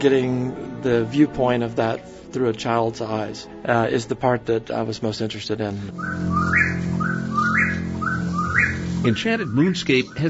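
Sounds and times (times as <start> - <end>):
speech: 0.0 - 7.0, 9.0 - 10.2
low sustained drone: 5.9 - 10.2
whippoorwill calling at night: 5.9 - 10.2.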